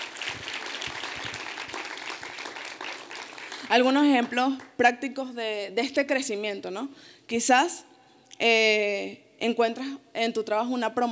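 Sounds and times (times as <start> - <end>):
applause: 0.0 - 4.8
speech: 3.7 - 11.1.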